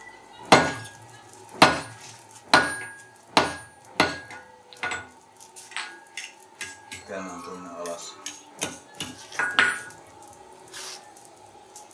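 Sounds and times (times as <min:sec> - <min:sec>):
hammer striking a stamp punch marking hot metal on a chisel: 0:00.5 - 0:01.0, 0:01.6 - 0:05.1.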